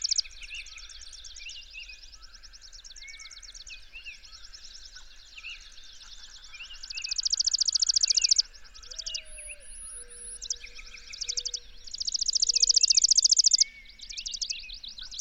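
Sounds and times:
loud rapid high bird trill: 0.0 - 0.2, 7.0 - 13.7
bird chorus of soft chirps and slurred notes: 0.0 - 15.2
thin drawn-out bird whistles: 7.2 - 15.2.

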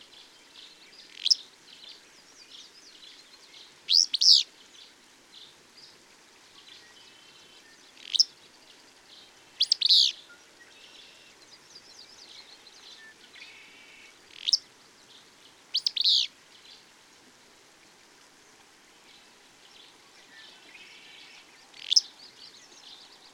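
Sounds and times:
bird song of high sharp chirps: 0.6 - 4.4, 6.6 - 16.8, 20.2 - 23.3.

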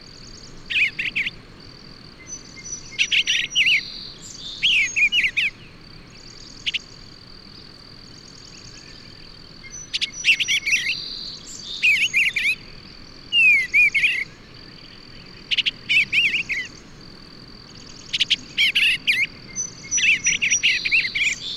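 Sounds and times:
bird song: 0.0 - 21.5.

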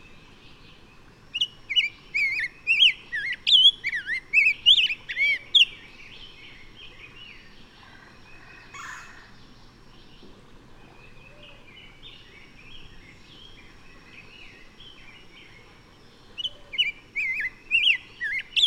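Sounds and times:
bird song: 0.0 - 18.6.

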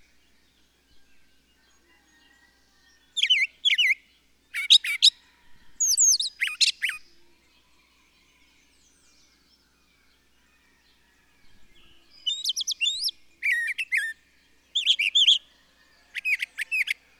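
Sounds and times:
bird song: 0.0 - 17.1.

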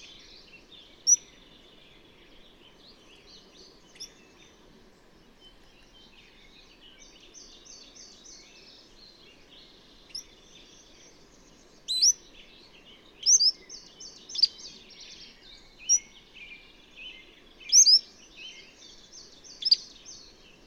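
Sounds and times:
bird twittering song: 0.0 - 20.6.

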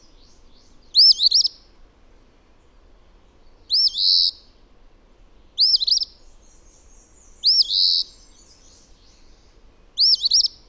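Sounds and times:
bird song of high bright looping arched notes: 0.0 - 1.7, 2.6 - 4.7, 5.4 - 10.6.

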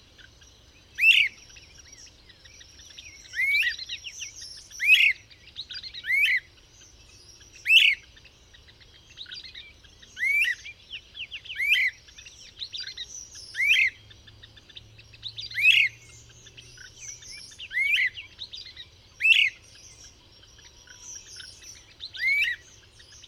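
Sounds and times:
bird song: 0.0 - 23.2.

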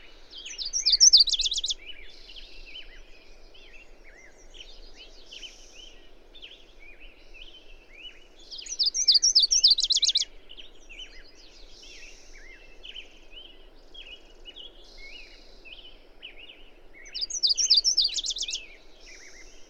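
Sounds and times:
bird song of high chirps ending in a fast trill: 0.4 - 1.8, 8.6 - 10.2, 17.1 - 18.6.

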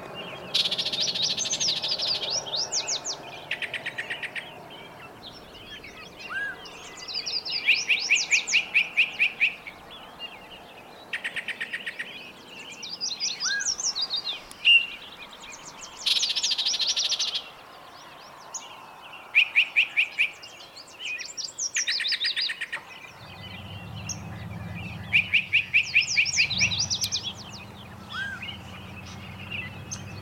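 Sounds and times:
mixed bird chorus singing: 0.0 - 30.2
low rumble: 23.2 - 30.2.

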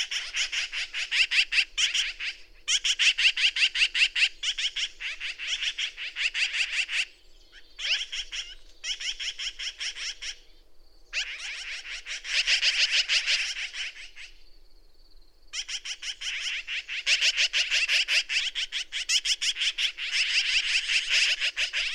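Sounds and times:
bird song: 0.0 - 21.9.

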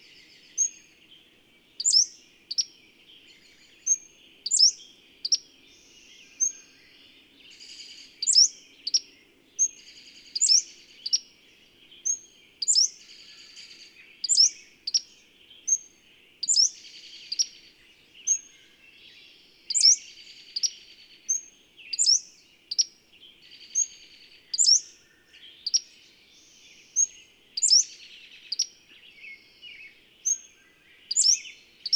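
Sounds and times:
bird chirping: 0.0 - 31.9.

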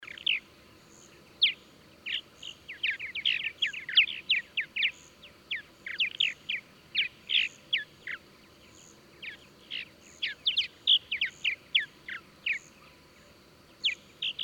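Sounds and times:
bird singing: 0.0 - 14.4.

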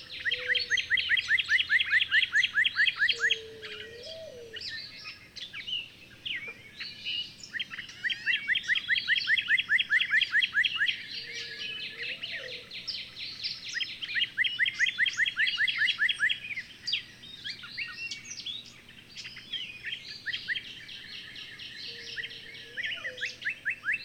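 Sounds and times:
bird song with rising chirped notes and jumbled twittering: 0.0 - 24.0.

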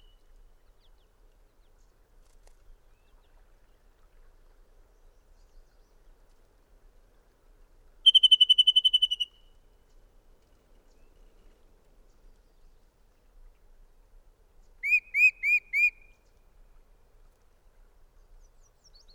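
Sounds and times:
bird trilling: 8.1 - 9.4, 14.9 - 16.0.

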